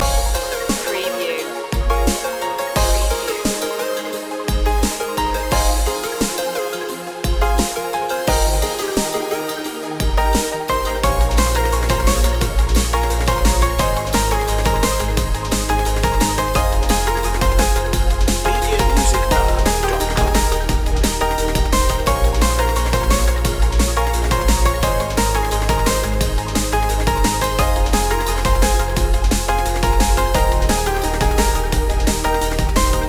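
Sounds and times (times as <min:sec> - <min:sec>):
dub glide loop: 0:00.0 - 0:33.0.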